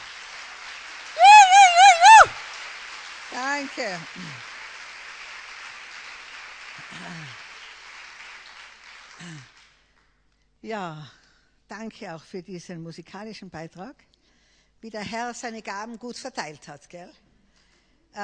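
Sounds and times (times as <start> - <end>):
audience clapping: 0.0 - 9.7
speech: 3.4 - 4.5, 9.2 - 9.5, 10.6 - 14.1, 14.8 - 17.2.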